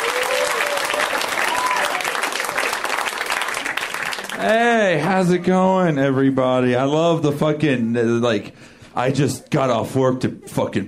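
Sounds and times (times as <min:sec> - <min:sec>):
audience applause: 0:00.0 - 0:05.5
speech: 0:04.4 - 0:10.8.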